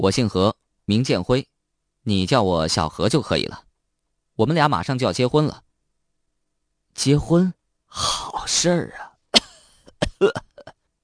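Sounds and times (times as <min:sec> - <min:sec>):
speech: 0:00.0 - 0:03.7, 0:04.4 - 0:05.7, 0:07.0 - 0:09.4, 0:10.2 - 0:10.5
person imitating violent coughing: 0:09.3 - 0:10.8.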